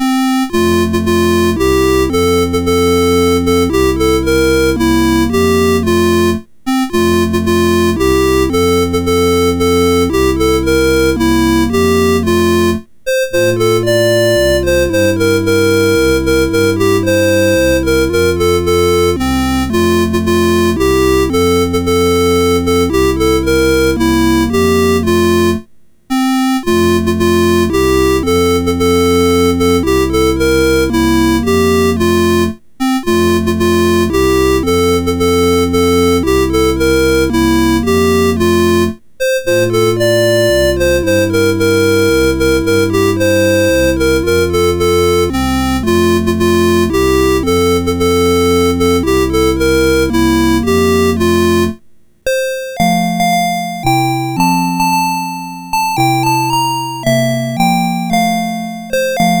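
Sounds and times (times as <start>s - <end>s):
Christmas carol on MOS6581R4 sound chip: 0.0s - 59.3s.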